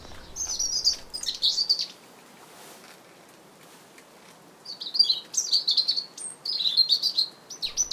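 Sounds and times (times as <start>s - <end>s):
European robin singing: 0.0s - 2.0s, 4.7s - 7.9s.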